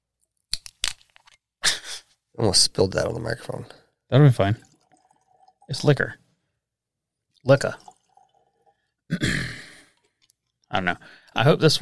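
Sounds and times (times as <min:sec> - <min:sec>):
speech: 0:02.4 - 0:04.7, 0:05.7 - 0:06.2, 0:07.4 - 0:07.9, 0:09.1 - 0:09.4, 0:10.7 - 0:11.8
cork popping: 0:04.4 - 0:06.2, 0:07.4 - 0:11.8.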